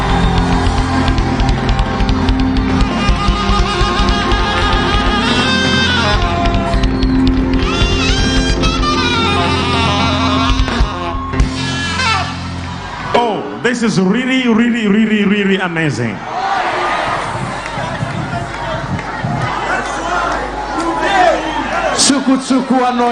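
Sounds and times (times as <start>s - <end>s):
audience clapping and cheering: 0.0s - 13.4s, 16.3s - 23.1s
speech: 13.8s - 16.3s, 22.2s - 23.1s.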